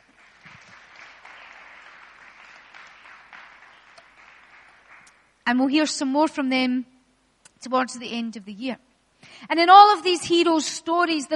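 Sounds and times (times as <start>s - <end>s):
round of applause: 0.0s - 5.4s
speech: 5.5s - 6.9s, 7.6s - 8.8s, 9.5s - 11.3s.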